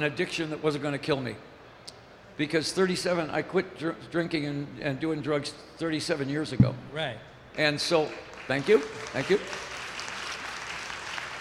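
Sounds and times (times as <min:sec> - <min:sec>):
speech: 0:00.0 - 0:09.6
audience applause: 0:08.2 - 0:11.3.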